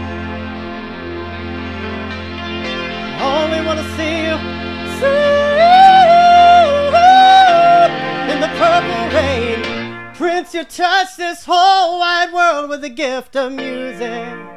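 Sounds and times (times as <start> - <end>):
strings: 0.0 - 10.6
keyboard: 0.0 - 14.5.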